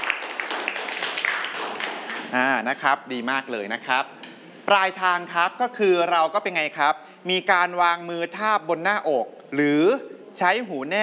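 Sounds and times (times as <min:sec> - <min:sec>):
students clapping for themselves in a Thai classroom: 0:00.0 - 0:02.5
speech: 0:02.3 - 0:11.0.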